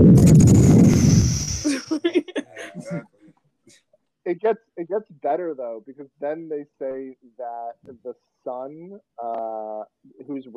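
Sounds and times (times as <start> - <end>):
explosion sound effect for brains exploding: 0.0 - 1.7
chuckling: 1.7 - 3.0, 4.3 - 8.1, 9.2 - 10.5
speech: 4.4 - 10.5.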